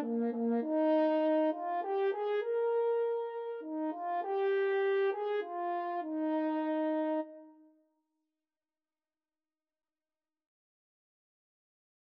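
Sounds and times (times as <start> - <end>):
French horn duet playing an anthem: 0.0 - 7.6.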